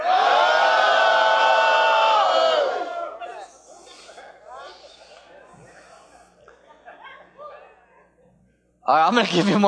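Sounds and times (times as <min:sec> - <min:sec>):
crowd yelling a battle cry in unison: 0:00.0 - 0:03.3
scattered chatter: 0:00.0 - 0:09.6
people laughing: 0:02.8 - 0:08.1
speech: 0:08.9 - 0:09.6.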